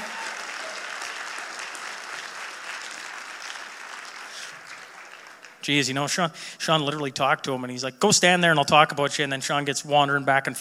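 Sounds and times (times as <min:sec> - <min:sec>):
audience applause: 0:00.0 - 0:05.8
speech: 0:05.6 - 0:10.6.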